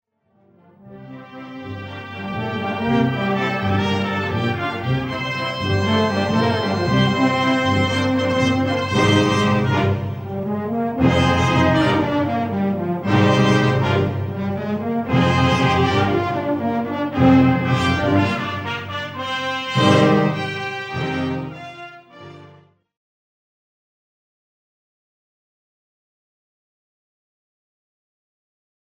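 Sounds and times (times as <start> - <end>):
concert prelude: 0.8 - 22.6.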